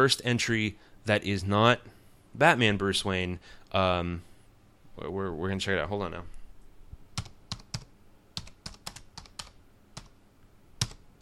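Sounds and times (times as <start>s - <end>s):
speech: 0.0s - 4.3s, 5.0s - 6.4s
typing a name into a search on a computer keyboard: 7.2s - 10.2s, 10.8s - 11.1s.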